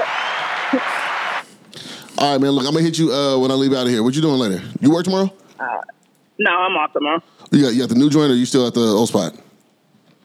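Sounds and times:
applause: 0:00.0 - 0:01.4
speech: 0:00.7 - 0:00.9, 0:02.2 - 0:09.5.

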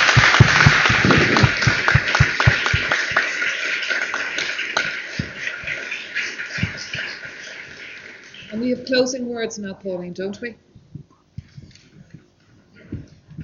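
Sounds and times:
audience applause: 0:00.0 - 0:08.6
speech: 0:08.9 - 0:10.7.

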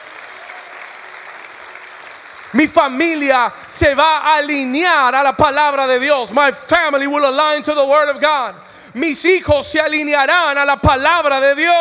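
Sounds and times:
audience applause: 0:00.0 - 0:03.8
speech: 0:02.5 - 0:11.7.

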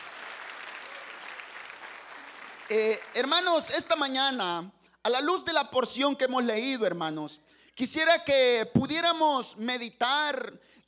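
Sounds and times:
audience applause: 0:00.0 - 0:03.4
speech: 0:02.7 - 0:10.8.

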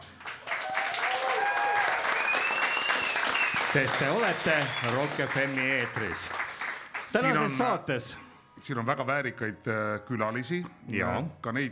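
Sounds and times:
audience applause: 0:00.0 - 0:07.6
speech: 0:03.7 - 0:06.4, 0:07.1 - 0:11.7.

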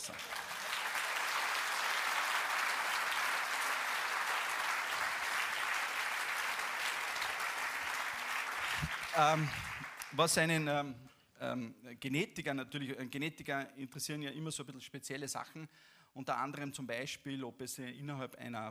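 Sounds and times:
audience applause: 0:00.0 - 0:10.3
speech: 0:08.8 - 0:18.6.

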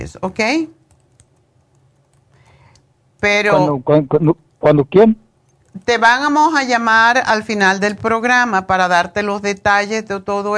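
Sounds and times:
speech: 0:00.0 - 0:00.8, 0:03.2 - 0:05.2, 0:05.8 - 0:10.5
steady hiss: 0:00.0 - 0:10.5
typing on a computer keyboard: 0:00.8 - 0:02.9.

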